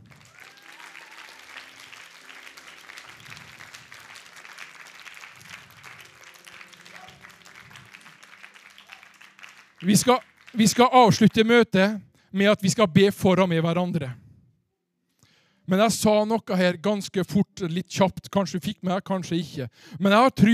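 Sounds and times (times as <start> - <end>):
audience applause: 0.0 - 11.3
speech: 9.8 - 14.2, 15.7 - 20.5.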